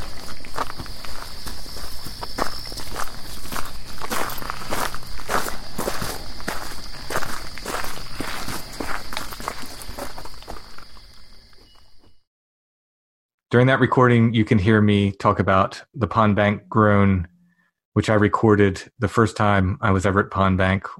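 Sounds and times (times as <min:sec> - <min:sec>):
rustling footfalls through dry forest litter: 0:00.0 - 0:10.6
high insect-like whine: 0:00.0 - 0:12.2
speech: 0:13.6 - 0:17.3, 0:18.0 - 0:20.9.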